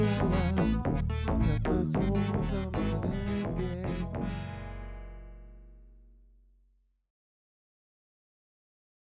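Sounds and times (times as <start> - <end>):
merengue music: 0.0 - 5.4.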